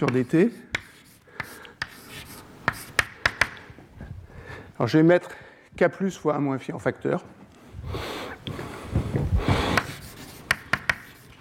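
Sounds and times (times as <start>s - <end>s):
speech: 0.0s - 0.7s, 4.8s - 8.0s
equation written on a board: 0.0s - 3.6s, 9.5s - 11.4s.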